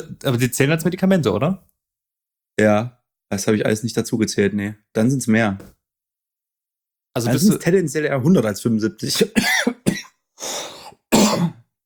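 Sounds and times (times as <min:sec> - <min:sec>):
speech: 0:00.0 - 0:01.7, 0:02.6 - 0:05.8, 0:07.2 - 0:09.8
person coughing with chesty rasping coughs: 0:09.1 - 0:11.6.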